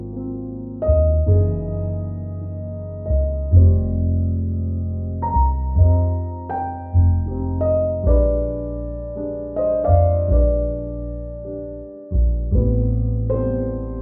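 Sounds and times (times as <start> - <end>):
romantic relaxing jazz music: 0.0 - 14.0.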